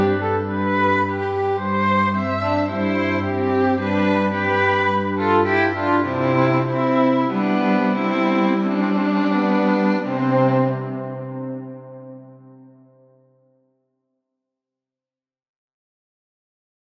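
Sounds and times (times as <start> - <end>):
string trio playing a fugue: 0.0 - 12.9.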